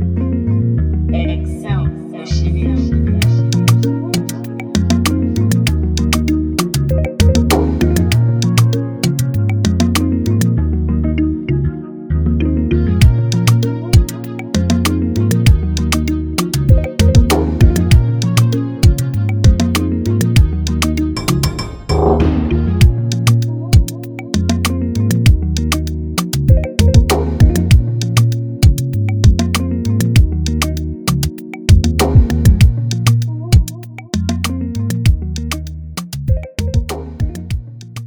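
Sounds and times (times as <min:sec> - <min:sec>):
modern Afrobeat music: 0:00.2 - 0:38.0.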